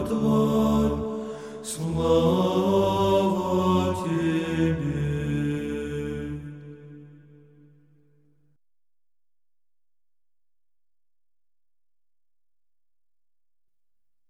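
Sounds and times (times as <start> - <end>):
Greek chant: 0.0 - 7.7.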